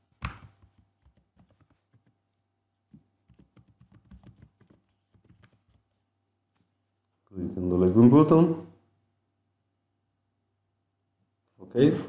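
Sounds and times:
login credentials typed on a computer keyboard: 0.2 - 2.2, 2.9 - 5.8
speech: 8.0 - 8.7.

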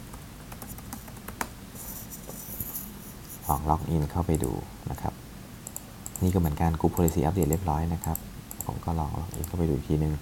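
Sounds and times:
computer keyboard typing at a login screen: 0.1 - 1.5, 5.6 - 9.6
speech: 3.5 - 5.1, 6.2 - 10.2.

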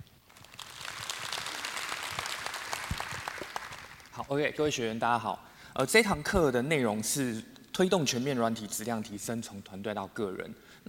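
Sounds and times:
audience applause welcoming a speaker: 0.3 - 4.2
speech: 4.2 - 10.8.

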